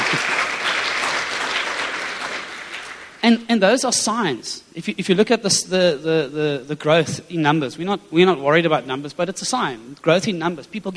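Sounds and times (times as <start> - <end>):
audience applause: 0.0 - 3.2
speech: 0.1 - 0.4, 3.2 - 10.9.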